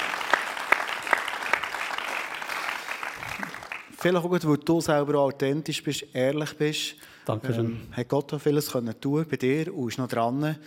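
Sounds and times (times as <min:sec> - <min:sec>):
audience applause: 0:00.0 - 0:04.0
speech: 0:04.0 - 0:10.6.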